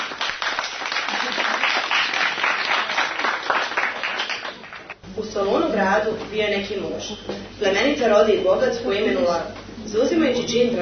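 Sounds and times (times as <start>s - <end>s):
audience applause welcoming student readers at a school program: 0.0s - 5.0s
speech: 5.2s - 10.7s.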